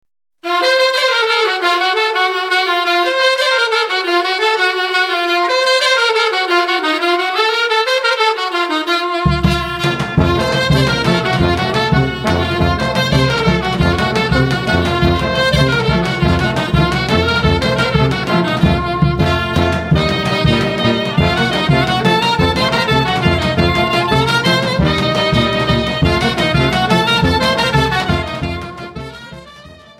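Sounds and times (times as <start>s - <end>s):
instrumental music: 0.4s - 29.9s.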